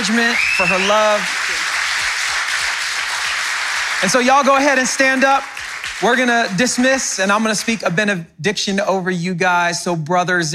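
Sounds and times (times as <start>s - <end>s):
speech: 0.0s - 1.4s, 4.0s - 10.5s
audience applause: 0.0s - 6.9s.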